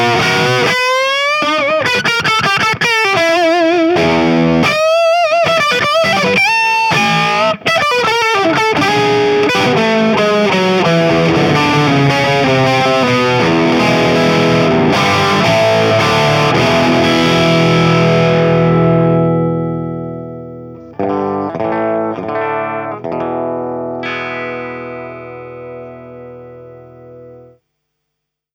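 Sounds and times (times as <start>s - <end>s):
ES335 electric guitar volume swells: 0.0s - 27.5s.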